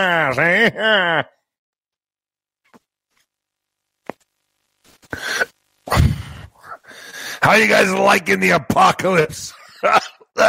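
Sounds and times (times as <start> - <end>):
speech: 0.0 - 1.4, 7.4 - 10.4
man inhaling and exhaling cigar smoke: 4.9 - 7.4.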